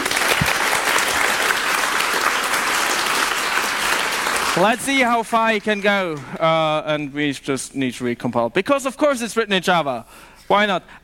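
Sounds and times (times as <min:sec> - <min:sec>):
audience applause: 0:00.0 - 0:06.3
speech: 0:04.6 - 0:11.0.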